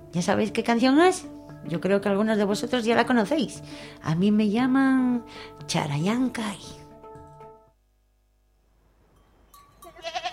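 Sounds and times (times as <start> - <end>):
speech: 0.1 - 6.8
goat bleating: 9.9 - 10.3.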